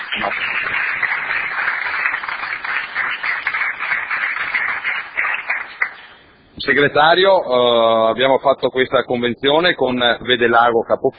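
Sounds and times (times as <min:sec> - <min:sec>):
audience applause: 0:00.0 - 0:06.2
speech: 0:00.2 - 0:00.8, 0:06.7 - 0:11.1.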